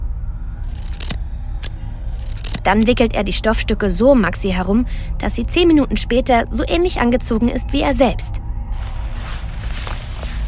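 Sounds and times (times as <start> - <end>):
low hum: 0.0 - 10.4
scissors cutting an old black bed sheet: 2.2 - 2.7
speech: 2.6 - 8.4.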